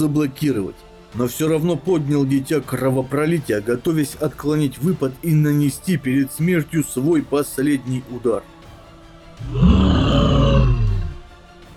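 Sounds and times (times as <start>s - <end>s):
speech: 0.0s - 8.5s, 9.4s - 10.7s
demon's roaring battle cry: 9.4s - 11.3s.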